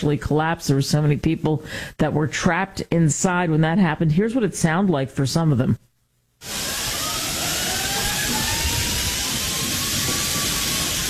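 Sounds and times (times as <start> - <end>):
speech: 0.0 - 5.8
rushing water inside collapsed mall: 6.4 - 11.0.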